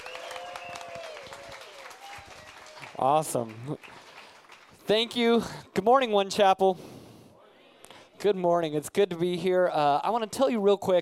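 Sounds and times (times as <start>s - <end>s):
congregation whoops: 0.0s - 2.9s
church congregation applauding to welcome a pastor: 0.0s - 5.4s
speech: 3.0s - 4.0s, 4.9s - 6.9s, 8.2s - 10.9s.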